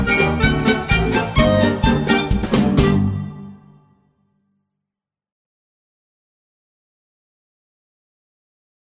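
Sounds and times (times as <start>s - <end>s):
cheerful melody: 0.0s - 4.3s.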